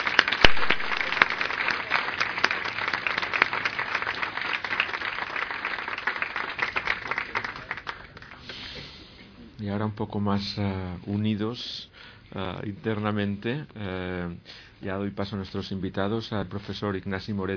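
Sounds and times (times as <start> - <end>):
applause: 0.0 - 8.5
speech: 9.7 - 17.5.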